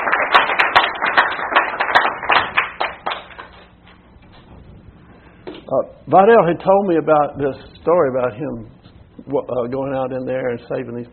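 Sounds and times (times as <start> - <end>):
audience applause: 0.0 - 3.6
speech: 5.7 - 11.1.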